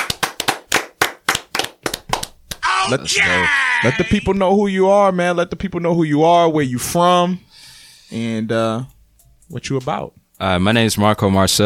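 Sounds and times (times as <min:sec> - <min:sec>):
audience clapping: 0:00.0 - 0:02.6
speech: 0:02.8 - 0:07.5, 0:08.1 - 0:08.9, 0:09.5 - 0:11.6.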